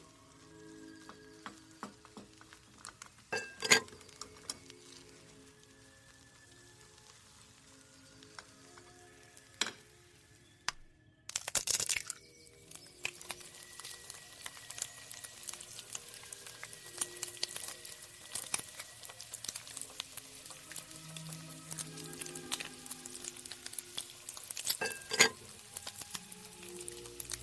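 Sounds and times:
old-time music: 0.0s - 10.9s, 12.3s - 27.4s
crackling sizzle: 0.0s - 27.4s
kitchen clinks and clatters: 3.3s - 4.0s, 24.7s - 25.4s.

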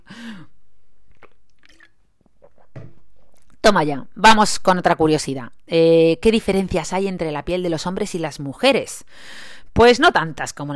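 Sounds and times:
person drinking a sip of water: 1.0s - 3.6s
speech: 3.7s - 10.7s.

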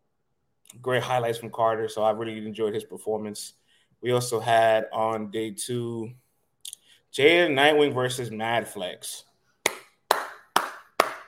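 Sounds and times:
speech: 0.7s - 6.2s, 7.1s - 9.3s
slow hand claps: 9.6s - 11.2s.

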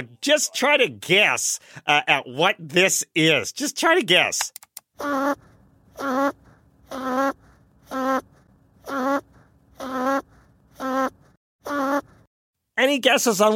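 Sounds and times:
speech: 0.0s - 6.4s, 12.8s - 13.5s
archival recording of snoring sped up twenty times: 5.0s - 12.3s.

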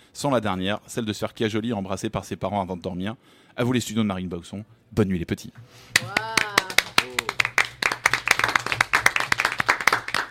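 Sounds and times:
speech: 0.2s - 6.6s
short high voiced whoops: 5.9s - 7.5s
audience clapping: 5.9s - 10.3s.

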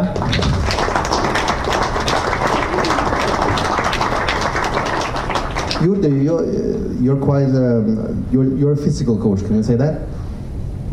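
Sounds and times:
small round of applause from a handful of people: 0.0s - 6.4s
speech: 5.8s - 10.1s.

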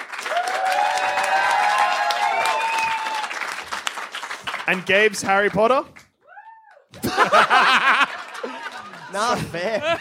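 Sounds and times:
crowd clapping: 0.0s - 9.9s
high drawn-out whoops and cheers: 0.2s - 3.5s, 6.2s - 7.0s
speech: 4.7s - 6.0s, 9.1s - 9.9s
laughter: 7.0s - 9.9s.

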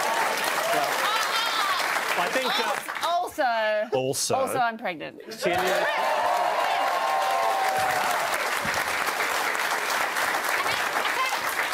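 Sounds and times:
audience applause: 0.0s - 3.2s, 5.5s - 11.7s
speech: 2.2s - 6.3s.

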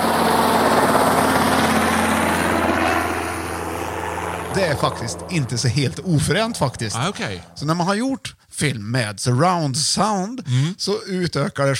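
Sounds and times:
helicopter flying past in surround sound: 0.0s - 8.0s
speech: 4.6s - 11.7s.

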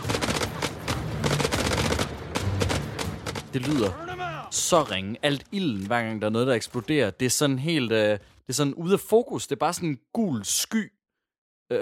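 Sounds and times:
video game gunfire like airsoft guns: 0.0s - 4.0s
speech: 3.6s - 11.0s.

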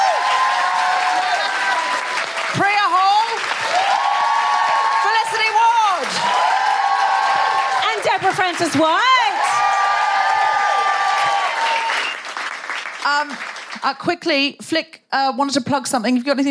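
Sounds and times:
audience applause: 0.0s - 13.8s
speech: 8.3s - 9.1s, 13.1s - 16.4s.

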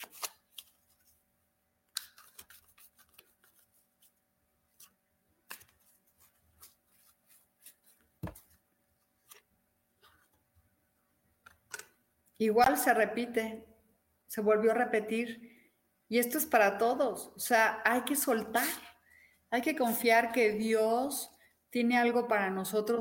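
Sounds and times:
playing cards being shuffled by hand: 0.0s - 1.2s, 1.9s - 10.4s
speech: 12.4s - 13.7s, 14.4s - 15.5s, 16.1s - 18.9s, 19.5s - 22.9s.

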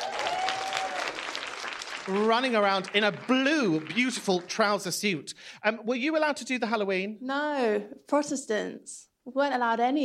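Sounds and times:
audience applause: 0.0s - 5.2s
speech: 2.1s - 10.0s.

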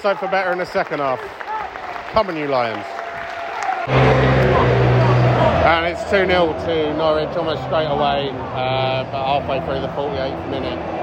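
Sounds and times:
speech: 0.0s - 1.4s, 2.1s - 3.0s, 3.9s - 4.3s, 5.6s - 11.0s
large stadium crowd applause: 0.0s - 11.0s.

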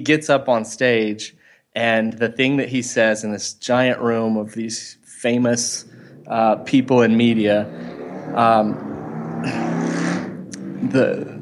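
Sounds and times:
speech: 0.0s - 9.7s, 10.9s - 11.4s
motorcycle passing by revving: 5.3s - 11.4s.

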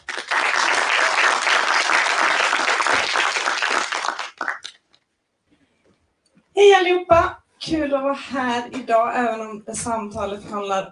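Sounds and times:
audience applause: 0.0s - 4.8s
speech: 6.8s - 10.8s.

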